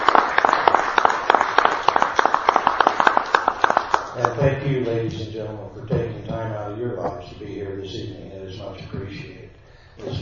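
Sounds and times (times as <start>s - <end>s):
audience applause: 0.0s - 4.4s
speech: 4.3s - 9.4s, 10.0s - 10.2s.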